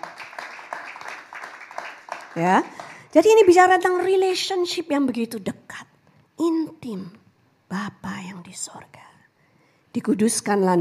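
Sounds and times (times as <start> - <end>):
audience applauding: 0.0 - 4.2
speech: 2.4 - 9.1, 10.0 - 10.7.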